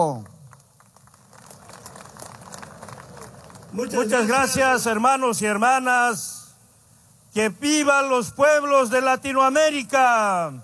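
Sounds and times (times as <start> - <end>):
speech: 0.0 - 0.3, 3.7 - 6.3, 7.4 - 10.6
applause: 0.0 - 4.4.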